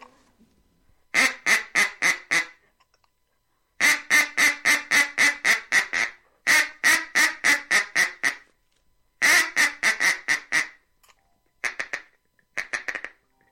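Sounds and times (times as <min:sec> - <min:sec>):
duck call blowing a feeding chuckle: 0:01.1 - 0:02.6, 0:03.8 - 0:08.5, 0:09.2 - 0:10.8, 0:11.6 - 0:13.3.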